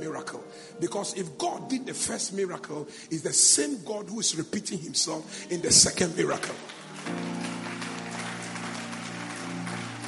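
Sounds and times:
speech: 0.0s - 7.5s
audience clapping: 6.2s - 10.0s.

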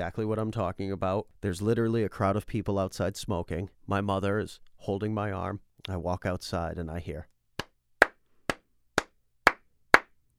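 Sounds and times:
speech: 0.0s - 7.3s
hand claps: 7.6s - 10.3s.

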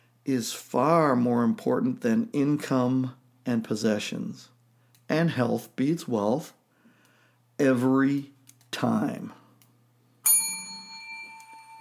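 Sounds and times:
speech: 0.2s - 4.5s, 5.1s - 6.6s, 7.6s - 9.4s
bell ringing: 10.3s - 11.7s.

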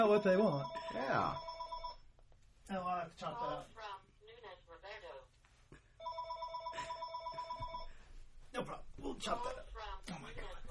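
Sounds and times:
speech: 0.0s - 1.5s, 2.7s - 4.0s, 8.6s - 10.6s
telephone ringing as a caller phones in to a show: 0.0s - 2.1s, 6.0s - 8.0s.

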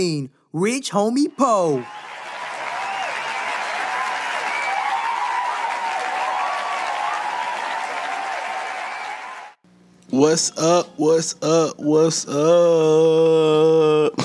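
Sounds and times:
speech: 0.0s - 2.0s, 10.2s - 14.2s
audience applause welcoming the host of a show in San Diego: 1.6s - 9.6s.

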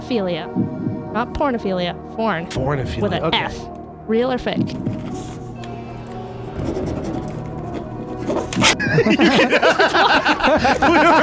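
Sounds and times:
speech: 0.1s - 5.3s, 8.6s - 11.2s
pens scratching furiously on paper as two people write: 4.6s - 8.8s
laughter: 6.6s - 11.2s.

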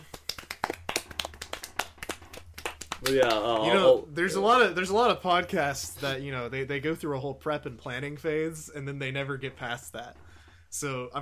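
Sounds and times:
hands clapping: 0.0s - 3.8s
speech: 3.0s - 11.2s.

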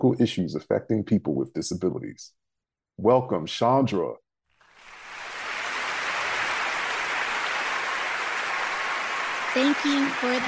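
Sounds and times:
speech: 0.0s - 4.2s, 9.6s - 10.4s
long round of audience applause for a guest on a show: 4.6s - 10.4s.

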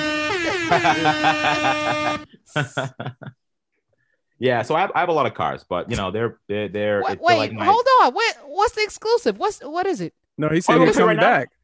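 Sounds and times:
air horn sound effect: 0.0s - 2.4s
laughter: 0.4s - 3.4s
speech: 0.7s - 3.2s, 4.4s - 11.6s.

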